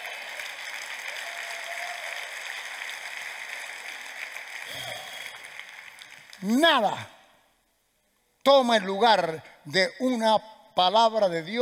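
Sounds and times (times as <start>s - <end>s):
audience applause: 0.0s - 7.0s
speech: 6.4s - 7.1s, 8.4s - 11.6s.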